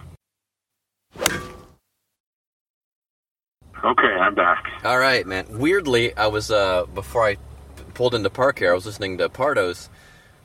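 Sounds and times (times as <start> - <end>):
golf club swing whoosh: 1.2 - 1.7
speech: 3.8 - 10.1.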